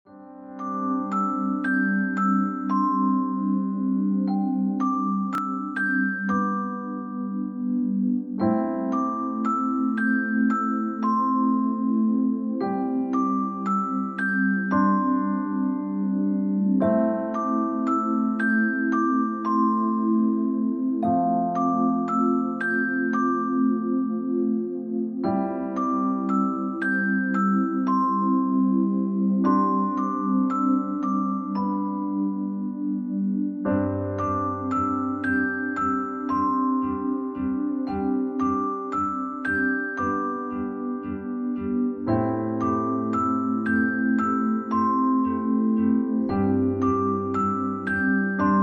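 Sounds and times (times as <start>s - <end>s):
relaxing piano: 0.0s - 48.6s.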